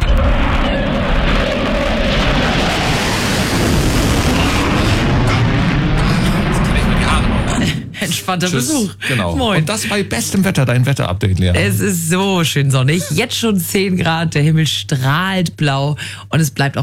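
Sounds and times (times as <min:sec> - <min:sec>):
Tornado military jet flying past: 0:00.1 - 0:07.5
speech: 0:08.3 - 0:16.8.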